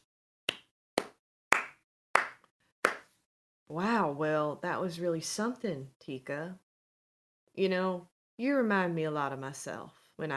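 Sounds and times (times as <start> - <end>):
hand clapping: 0.0 - 3.1
speech: 3.7 - 6.6, 7.6 - 10.3.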